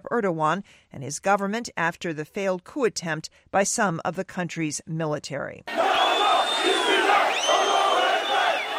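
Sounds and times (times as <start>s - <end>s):
speech: 0.1s - 6.0s
crowd chanting at a rally: 5.7s - 8.7s
whistles: 5.7s - 8.7s.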